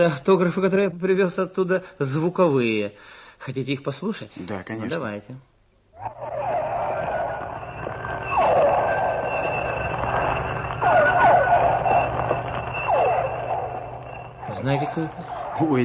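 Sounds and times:
speech: 0.0 - 6.5, 14.5 - 15.8
constant low hum: 6.0 - 15.6
pilot whale squeals and whistles underwater: 6.0 - 15.8.

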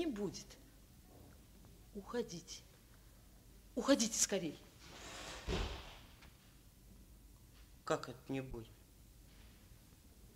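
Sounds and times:
speech: 0.0 - 0.6, 2.0 - 2.7, 3.8 - 5.8, 7.9 - 8.8
door being slammed shut: 5.0 - 6.2.

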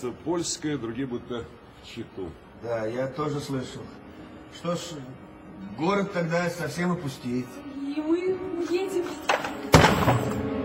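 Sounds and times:
speech: 0.0 - 9.4
expensive clock smashing to pieces: 9.3 - 10.5.

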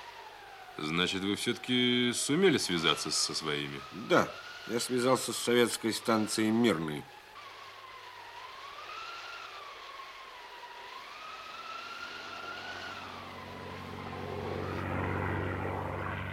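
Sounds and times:
airplane flying nearby: 0.0 - 6.8, 10.5 - 16.3
speech: 0.8 - 7.2.

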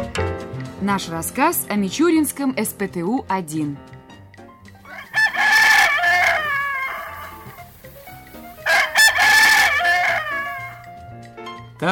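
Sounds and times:
speech: 0.8 - 3.9
golden rooster crowing in the morning: 4.9 - 7.6, 8.6 - 10.8.

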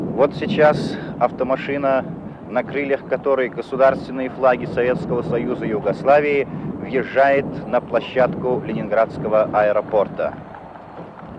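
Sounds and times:
speech: 0.2 - 10.5
large crowd warmly cheering and applauding arrivals: 10.3 - 11.3.

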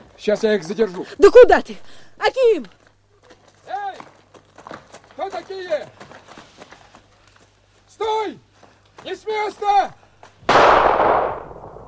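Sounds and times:
speech: 0.2 - 2.8, 5.2 - 6.1, 8.0 - 10.0
single gunshot fired into the air in a radio drama: 10.5 - 11.8.

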